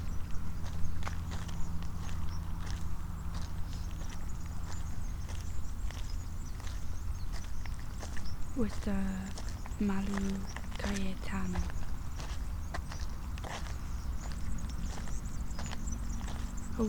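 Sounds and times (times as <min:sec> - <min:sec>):
city hum: 0:00.0 - 0:16.8
constant low rumble of traffic: 0:00.0 - 0:16.8
footsteps walking along a hard surface on a city route: 0:00.6 - 0:16.8
speech: 0:08.6 - 0:11.8.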